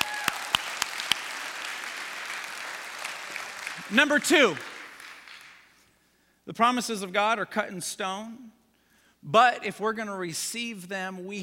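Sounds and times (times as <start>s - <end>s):
audience applause: 0.0s - 5.7s
speech: 3.9s - 4.7s, 6.5s - 8.6s, 9.2s - 11.4s.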